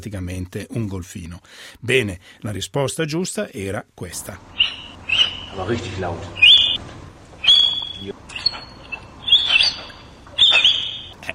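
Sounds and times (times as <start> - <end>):
speech: 0.0 - 4.6, 5.5 - 6.4
orangutan whistling: 4.5 - 6.8, 7.4 - 11.2.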